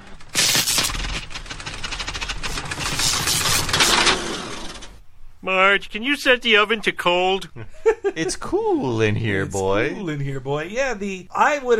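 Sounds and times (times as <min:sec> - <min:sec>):
refrigerator motor sputtering and dying: 0:00.0 - 0:05.0
speech: 0:05.4 - 0:11.7.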